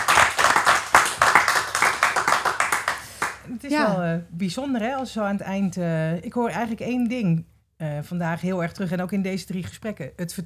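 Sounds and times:
crowd applauding: 0.0 - 4.0
speech: 3.7 - 10.4.

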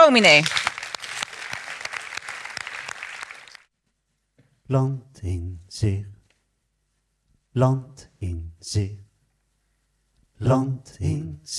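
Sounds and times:
audience applause: 0.0 - 3.7
speech: 0.1 - 0.6, 4.7 - 6.1, 7.6 - 9.0, 10.4 - 11.5.

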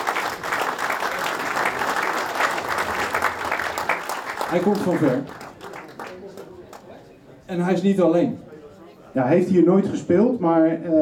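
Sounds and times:
audience applause: 0.0 - 6.9
speech: 4.5 - 5.4, 7.5 - 8.5, 9.2 - 10.9.

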